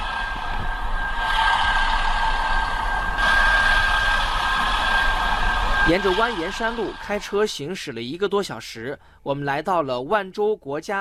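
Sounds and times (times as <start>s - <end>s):
mechanized floating-debris cleanup boat engine drone on the Yangtze at Wanzhou: 0.0s - 7.7s
speech: 5.9s - 10.9s.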